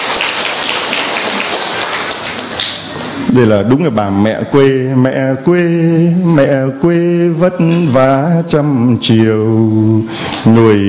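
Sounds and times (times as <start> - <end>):
crowd clapping: 0.0 - 3.2
speech: 3.3 - 10.8.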